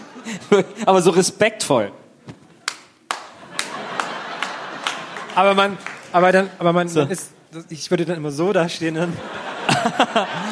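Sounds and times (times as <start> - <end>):
laughter: 0.0 - 1.1, 3.2 - 7.3, 8.9 - 10.5
speech: 0.2 - 2.0, 5.4 - 10.5
hands clapping: 2.3 - 6.2.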